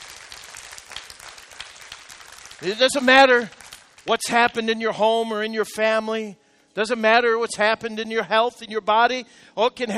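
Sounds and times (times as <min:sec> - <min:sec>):
church congregation hand clap of praise: 0:00.0 - 0:04.8
speech: 0:02.6 - 0:09.9.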